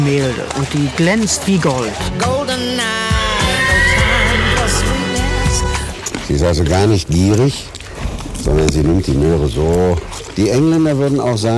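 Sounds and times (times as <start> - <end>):
speech: 0.1 - 3.2, 6.3 - 7.8, 8.4 - 11.5
mare whinnying: 2.5 - 5.9.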